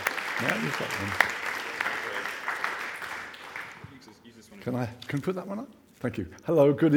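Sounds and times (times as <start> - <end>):
audience applause: 0.0 - 4.1
speech: 0.4 - 1.4, 4.6 - 6.9.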